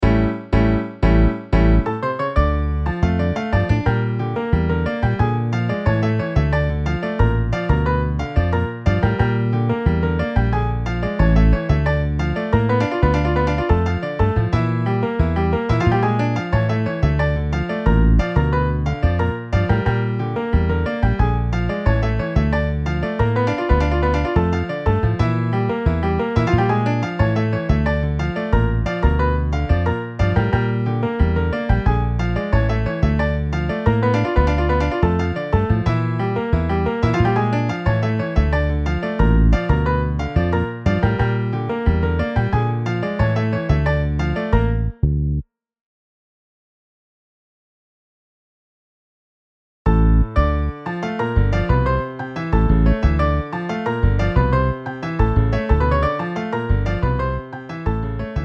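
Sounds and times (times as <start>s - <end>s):
MIDI piano and bass: 0.0s - 45.4s, 49.9s - 58.4s.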